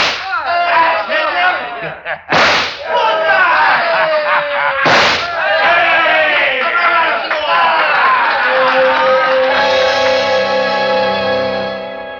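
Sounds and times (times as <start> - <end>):
gunshots with tail: 0.0 - 0.3, 2.3 - 2.9, 4.8 - 5.4
excited voices and cheering: 0.2 - 2.1, 2.8 - 11.5
laughter: 0.6 - 10.4.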